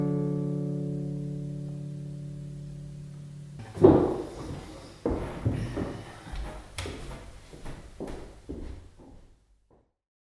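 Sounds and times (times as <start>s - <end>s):
musical study in D: 0.0s - 8.5s.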